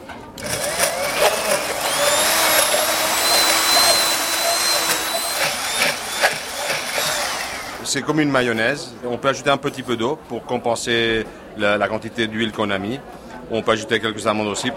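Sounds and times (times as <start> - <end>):
kitchen blender mixing sauce: 0.4 - 7.8
speech: 7.9 - 14.7.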